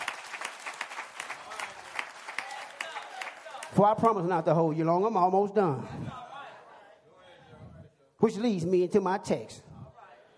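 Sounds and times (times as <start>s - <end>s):
audience hand clapping: 0.0s - 4.4s
speech: 3.7s - 6.2s, 8.2s - 9.6s.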